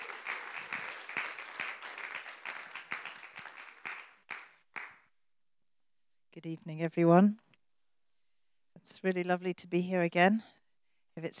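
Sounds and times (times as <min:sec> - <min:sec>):
church congregation clapping to welcome a guest: 0:00.0 - 0:05.1
speech: 0:06.4 - 0:07.5, 0:08.9 - 0:10.5, 0:11.2 - 0:11.3.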